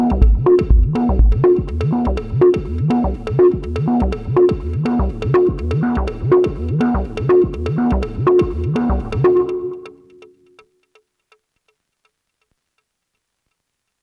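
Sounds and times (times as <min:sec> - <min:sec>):
techno on acid bass synthesizer, FM synthesizer and sampler: 0:00.0 - 0:10.2.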